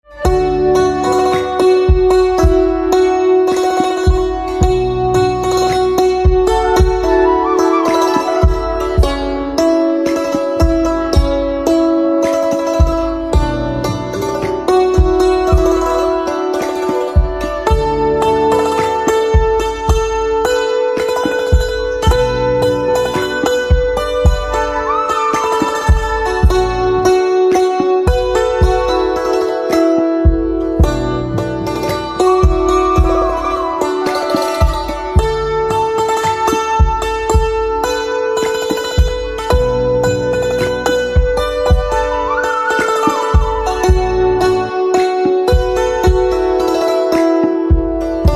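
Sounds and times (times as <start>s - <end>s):
santoor playing: 0.0s - 48.3s.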